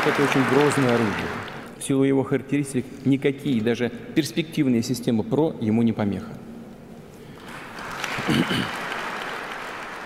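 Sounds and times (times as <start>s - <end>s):
audience applauding after a speech: 0.0s - 1.7s, 7.4s - 10.0s
speech: 0.0s - 6.5s, 8.2s - 8.8s.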